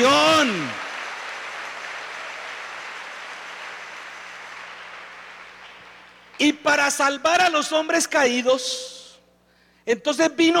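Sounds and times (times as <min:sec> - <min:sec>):
audience applause: 0:00.0 - 0:06.4
speech: 0:06.4 - 0:09.0, 0:09.8 - 0:10.5.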